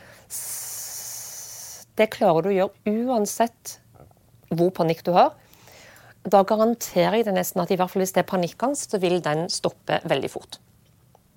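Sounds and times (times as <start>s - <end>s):
long hissing S-sound exhale: 0.0s - 1.9s
speech: 2.0s - 3.8s, 4.5s - 5.4s, 6.2s - 10.6s.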